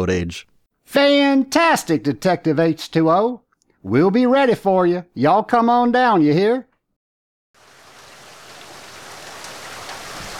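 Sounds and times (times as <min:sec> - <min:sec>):
speech: 0:00.0 - 0:06.7
deluge of rain slowing to a light drizzle: 0:07.6 - 0:10.3.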